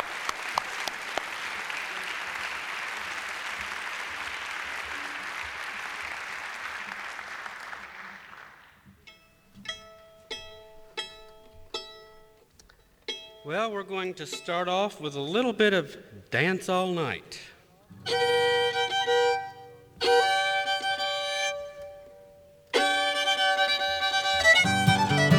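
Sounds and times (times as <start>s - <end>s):
audience applause welcoming a fiddler on stage: 0.0s - 8.8s
plucked string notes: 8.9s - 16.9s, 17.9s - 25.3s
speech: 13.5s - 18.5s.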